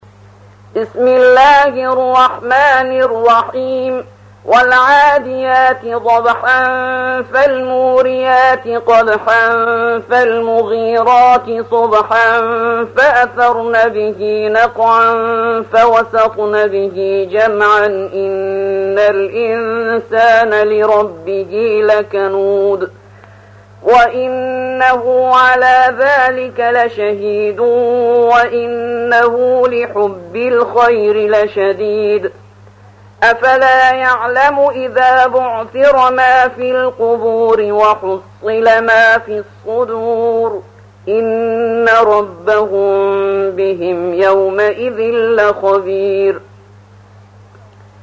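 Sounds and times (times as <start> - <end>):
person reciting the Quran: 0.7 - 32.4, 33.2 - 46.5.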